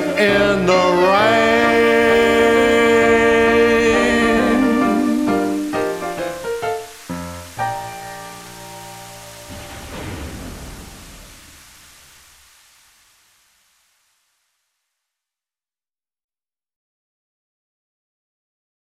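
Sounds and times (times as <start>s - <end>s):
tribute show saxophone band playing: 0.0s - 6.8s.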